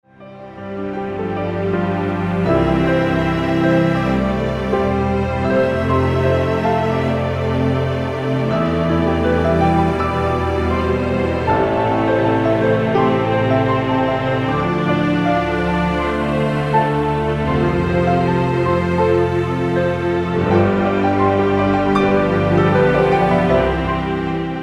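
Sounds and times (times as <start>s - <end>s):
instrumental music: 0.1s - 24.6s.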